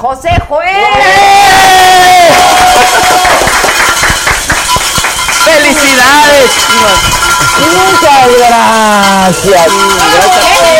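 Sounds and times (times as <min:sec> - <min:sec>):
speech: 0:00.0 - 0:01.4, 0:05.6 - 0:10.7
audience applause and cheering: 0:00.9 - 0:05.4.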